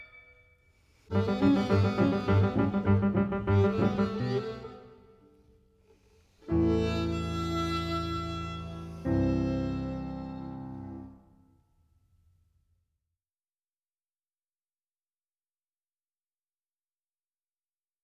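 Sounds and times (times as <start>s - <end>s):
piano: 1.1s - 5.2s, 6.5s - 11.2s
violin: 1.1s - 5.3s, 6.4s - 11.2s.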